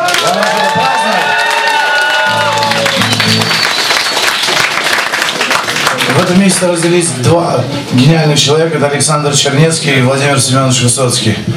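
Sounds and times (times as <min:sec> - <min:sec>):
audience applause: 0:00.0 - 0:07.1
speech: 0:06.4 - 0:11.5.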